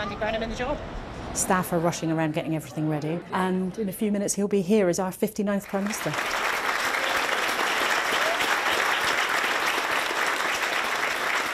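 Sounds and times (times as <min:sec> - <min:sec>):
speech: 0:00.0 - 0:06.4
staff clapping and applause: 0:05.6 - 0:11.5.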